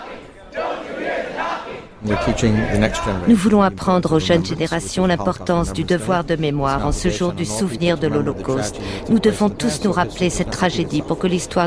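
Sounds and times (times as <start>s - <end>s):
crowd of students protesting outside a house: 0.0s - 3.4s
speech: 2.0s - 11.6s.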